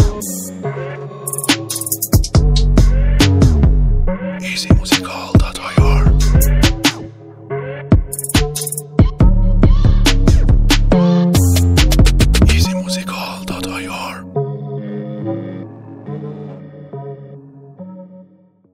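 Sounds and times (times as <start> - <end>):
music beat: 0.0 - 0.5, 1.3 - 7.2, 7.9 - 14.0.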